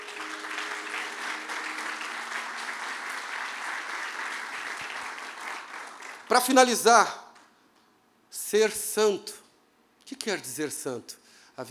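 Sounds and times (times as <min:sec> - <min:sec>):
audience applauding: 0:00.0 - 0:06.9
speech: 0:06.3 - 0:07.2, 0:08.5 - 0:09.4, 0:10.2 - 0:11.6.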